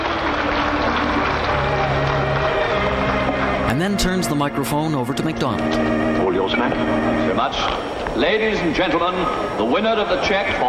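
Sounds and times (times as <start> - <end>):
audience applause: 0.0 - 4.5
speech: 3.8 - 10.6.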